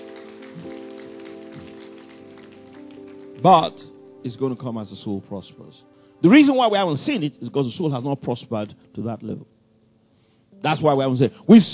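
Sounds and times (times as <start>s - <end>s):
audience clapping hands: 0.0s - 4.0s
speech: 3.4s - 9.6s, 10.6s - 11.7s.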